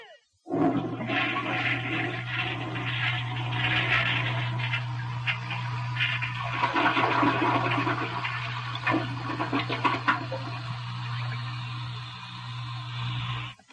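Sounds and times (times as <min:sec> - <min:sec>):
toilet flushing: 0:00.5 - 0:13.6.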